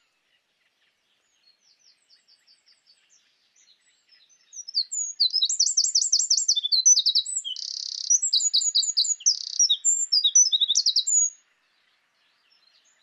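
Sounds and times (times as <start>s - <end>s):
Eurasian wren Troglodytes troglodytes indigenus singing: 3.6s - 11.4s.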